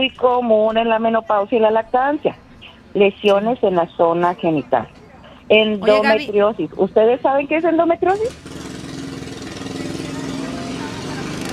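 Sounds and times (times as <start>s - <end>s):
speech: 0.0s - 8.5s
car engines droning outside: 2.2s - 11.5s.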